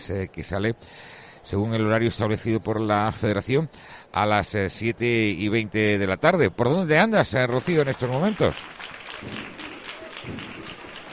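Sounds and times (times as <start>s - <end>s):
speech: 0.0s - 9.6s, 10.2s - 10.5s
crowd applause at a Holy Week procession: 7.4s - 11.1s.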